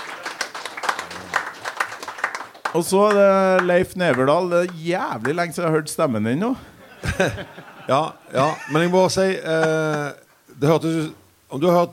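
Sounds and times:
people clapping: 0:00.0 - 0:05.6, 0:09.5 - 0:10.2
speech: 0:02.8 - 0:11.9
laughter: 0:06.7 - 0:10.0.

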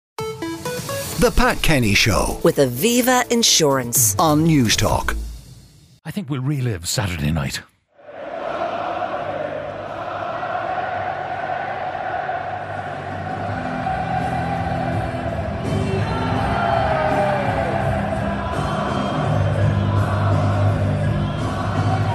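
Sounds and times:
speech: 0:01.2 - 0:05.3, 0:06.0 - 0:07.7
stadium crowd of fans singing together in unison: 0:08.0 - 0:22.1
crowd shouts and whoops: 0:08.7 - 0:19.3.

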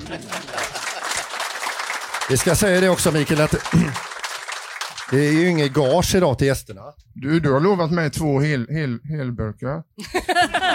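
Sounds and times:
laughter: 0:00.0 - 0:01.4, 0:03.4 - 0:04.1, 0:10.0 - 0:10.7
group applause: 0:00.0 - 0:06.2
speech: 0:00.1 - 0:00.7, 0:02.3 - 0:04.1, 0:05.1 - 0:10.7.

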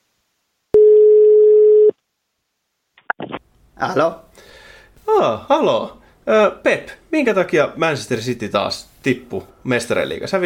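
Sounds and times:
telephone ringing tone: 0:00.8 - 0:01.9
speech: 0:03.8 - 0:04.5, 0:05.1 - 0:10.4.

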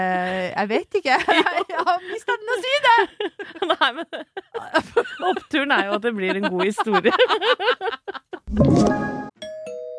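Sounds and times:
speech: 0:00.0 - 0:09.2
laughter: 0:01.1 - 0:08.5
doorbell chime: 0:08.9 - 0:09.9.

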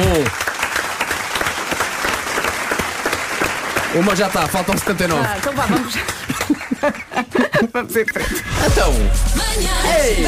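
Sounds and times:
round of applause: 0:00.0 - 0:07.1
speech: 0:03.9 - 0:10.2
laughter: 0:05.3 - 0:08.9.

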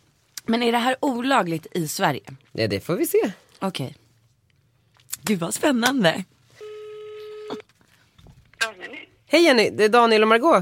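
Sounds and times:
speech: 0:00.5 - 0:04.0, 0:05.2 - 0:06.3, 0:09.3 - 0:10.5
telephone ringback tone while placing call: 0:06.6 - 0:07.6.

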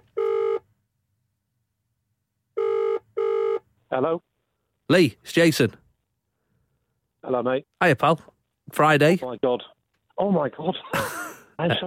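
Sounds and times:
phone call ringing tone: 0:00.0 - 0:00.6, 0:02.6 - 0:03.6
speech: 0:03.9 - 0:04.3, 0:04.9 - 0:05.8, 0:07.2 - 0:11.8.

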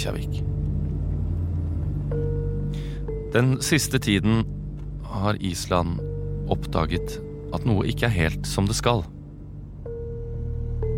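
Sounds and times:
speech: 0:00.0 - 0:00.6, 0:02.1 - 0:09.2
car driving on the road from Keflavík international airport toward Reykjavík: 0:00.0 - 0:10.9.

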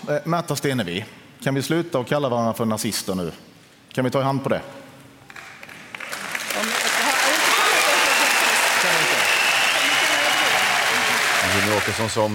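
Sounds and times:
speech: 0:00.0 - 0:04.8, 0:11.8 - 0:12.3
studio audience applause: 0:05.3 - 0:12.3.

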